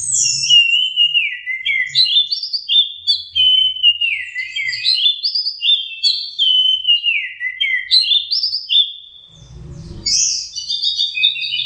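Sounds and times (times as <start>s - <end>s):
orange-headed thrush song: 0.0s - 11.6s.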